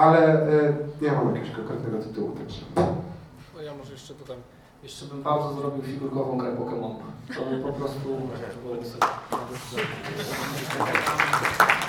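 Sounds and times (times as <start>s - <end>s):
speech: 0.0s - 11.8s
audience clapping: 9.0s - 11.8s.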